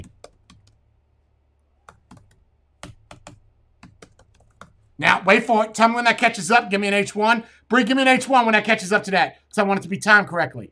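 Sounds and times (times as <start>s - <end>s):
typing on a computer keyboard: 0.0s - 0.8s, 1.8s - 4.9s
speech: 5.0s - 10.6s.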